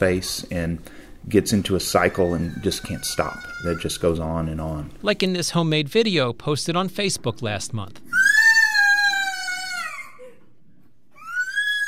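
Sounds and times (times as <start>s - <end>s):
speech: 0.0s - 8.4s
girl screaming: 8.1s - 10.4s, 11.2s - 11.8s.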